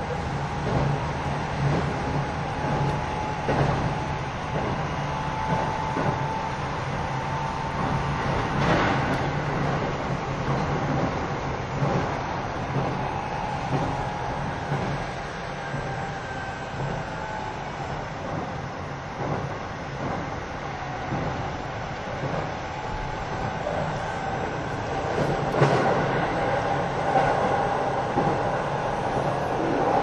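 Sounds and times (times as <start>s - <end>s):
train running along steadily: 0.0s - 30.0s.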